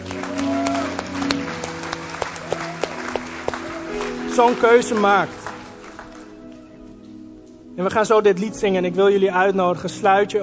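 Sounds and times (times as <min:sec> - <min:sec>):
audience clapping: 0:00.0 - 0:07.0
speech: 0:04.4 - 0:05.4, 0:07.8 - 0:10.4.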